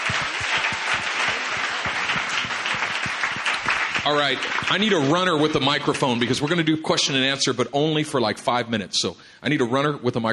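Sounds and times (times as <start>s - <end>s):
audience applause: 0.0s - 7.2s
speech: 4.0s - 10.3s.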